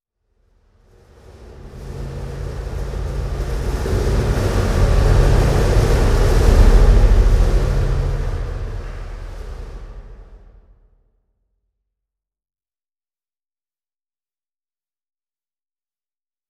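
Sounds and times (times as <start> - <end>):
stinger indoors: 0.8 - 10.8.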